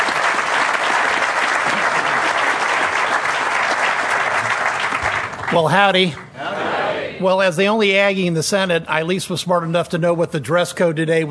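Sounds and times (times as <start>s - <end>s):
audience applause: 0.0s - 6.2s
speech: 5.5s - 6.2s, 7.2s - 11.2s.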